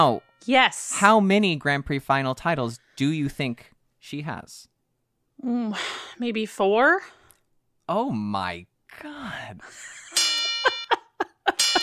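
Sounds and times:
double bell sound effect: 0.0 - 0.5, 10.2 - 11.8
speech: 0.0 - 4.7, 5.4 - 7.2, 7.9 - 10.0
laughter: 9.6 - 11.8.

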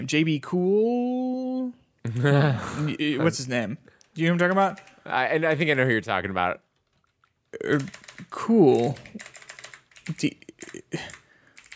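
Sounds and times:
speech: 0.0 - 1.2, 2.0 - 6.6, 7.5 - 9.3, 10.1 - 11.2
typing on a computer keyboard: 4.0 - 5.6, 6.7 - 11.7.

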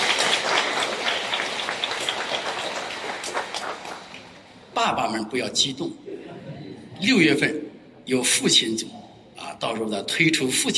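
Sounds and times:
audience applause: 0.0 - 4.4
speech: 4.8 - 6.0, 7.0 - 9.0, 9.6 - 10.7.

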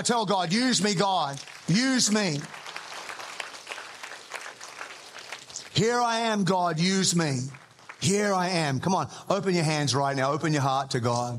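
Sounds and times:
speech: 0.0 - 2.7, 5.8 - 11.3
crowd applauding: 0.0 - 8.7.

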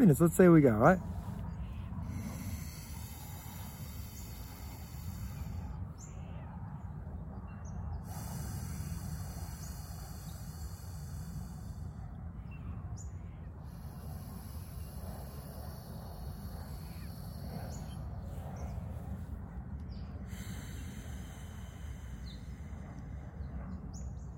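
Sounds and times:
speech: 0.0 - 1.2
nasal breathing during alternate nostril breathwork: 0.0 - 7.0, 7.9 - 24.2.

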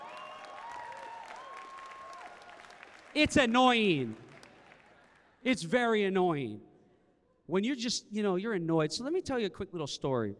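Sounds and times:
audience clapping: 0.0 - 5.4
speech: 3.1 - 4.2, 5.4 - 6.7, 7.5 - 10.3.

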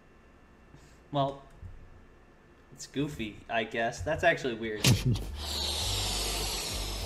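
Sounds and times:
speech: 1.1 - 1.5, 2.8 - 5.7
balloon inflating hiss: 5.2 - 7.0.

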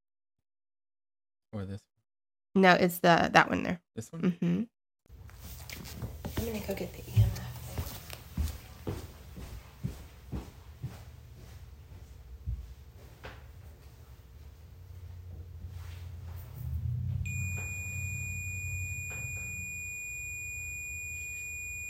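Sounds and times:
speech: 1.5 - 2.0, 2.6 - 4.8, 5.8 - 7.4
footsteps walking away in a house: 5.2 - 17.2
steady high electronic beep tone: 17.3 - 21.8.

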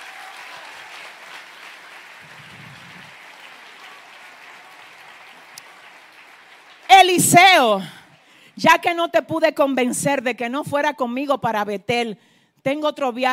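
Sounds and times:
audience applause: 0.0 - 7.3
speech: 7.0 - 8.0, 8.6 - 13.3.

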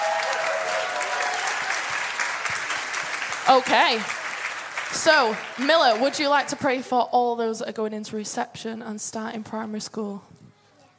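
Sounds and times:
audience applause: 0.0 - 6.8
speech: 3.5 - 4.2, 4.9 - 10.4.

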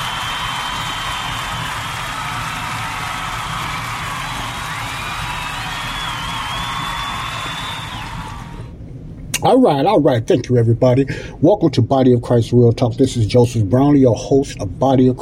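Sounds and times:
crowd applauding: 0.0 - 8.7
whistle-like whoops: 0.0 - 8.7
speech: 9.4 - 15.1.

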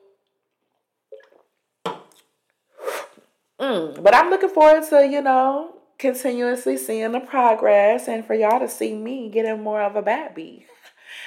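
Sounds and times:
person sipping a drink: 1.1 - 3.8
speech: 3.6 - 10.8.

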